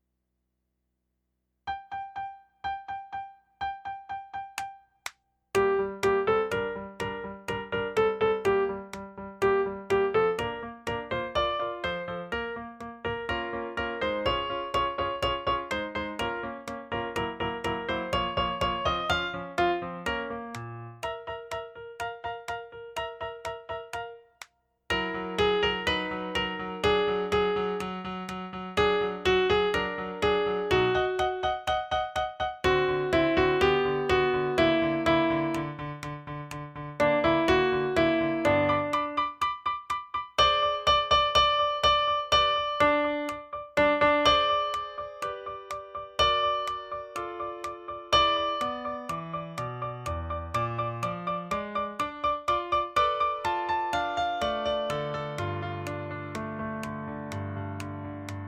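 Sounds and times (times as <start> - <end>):
piano: 1.7 - 58.4.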